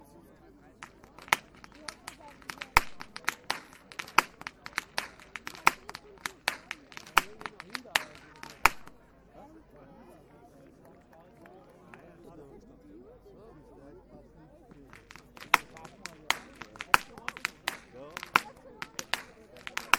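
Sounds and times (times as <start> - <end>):
youth whip cracking: 0.8 - 9.0, 14.8 - 19.9.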